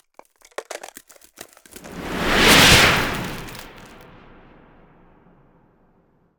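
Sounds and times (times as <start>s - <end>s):
ice spell cold whooshes: 1.8s - 5.8s.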